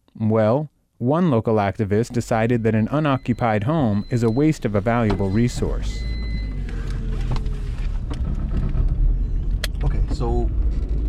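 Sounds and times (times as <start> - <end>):
speech: 0.2 - 6.2
car on 15th Avenue in Liberty City, North Miami, road rumble: 2.2 - 11.0.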